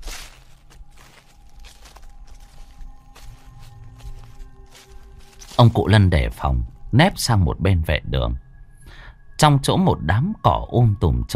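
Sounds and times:
footsteps crunching on dry leaves: 0.0s - 6.8s
speech: 5.6s - 8.4s, 9.4s - 11.3s.

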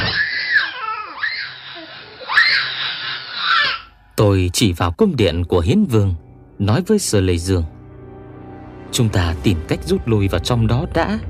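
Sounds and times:
wailing and screaming from inside a cave: 0.0s - 3.9s
speech: 4.2s - 7.8s, 8.9s - 11.2s.

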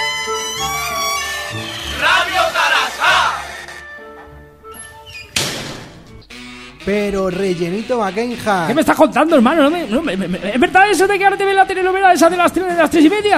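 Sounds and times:
bar door swinging open: 0.0s - 6.5s
steady music: 0.0s - 13.3s
laughter: 2.0s - 3.4s, 9.4s - 11.0s
speech: 6.8s - 13.3s.

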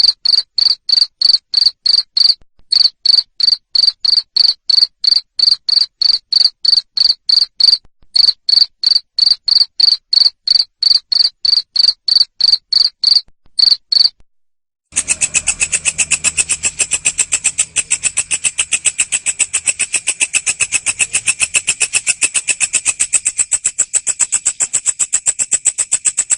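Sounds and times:
cricket chirping: 0.0s - 14.2s, 14.9s - 26.3s.

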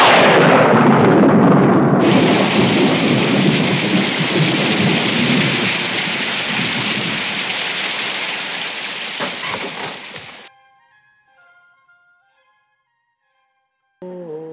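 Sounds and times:
loud rolling rumble of thunder: 0.0s - 10.5s
steady heavy rain: 0.0s - 10.5s.

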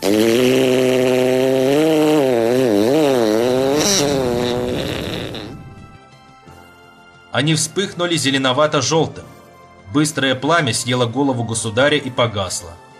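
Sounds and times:
loud drawn-out fart: 0.0s - 6.0s
speech: 7.4s - 9.3s, 9.9s - 12.9s.

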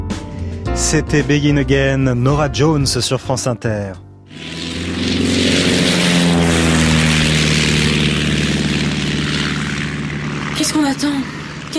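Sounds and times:
speech: 0.8s - 5.4s, 10.7s - 11.7s
propeller airplane engine droning during a first flight: 4.3s - 11.7s
rushing air and prop noise: 4.3s - 11.7s.

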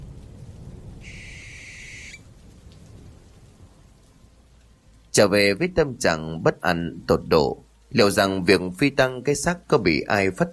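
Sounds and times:
barn owl screeching mournful cries: 1.0s - 2.2s
speech: 5.2s - 10.5s.

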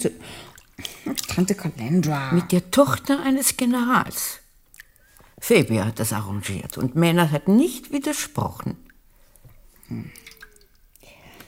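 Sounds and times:
cold water dripping: 0.0s - 11.4s
speech: 1.4s - 4.4s, 5.4s - 8.8s, 9.9s - 10.2s
water splash: 10.1s - 10.8s.

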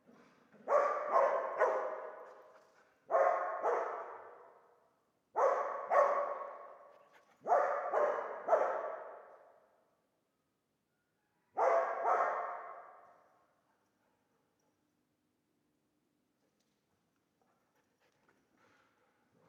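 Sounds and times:
dog barking: 0.6s - 9.6s, 11.5s - 13.8s.

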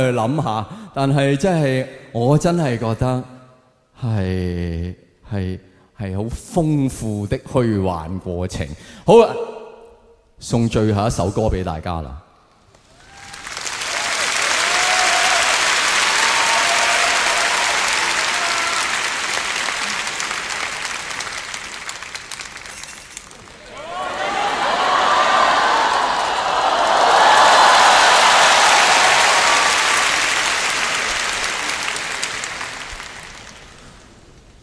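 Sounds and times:
speech: 0.0s - 3.3s, 4.0s - 9.5s, 10.4s - 12.2s
audience applause at a Cantonese storytelling show: 12.8s - 34.3s.

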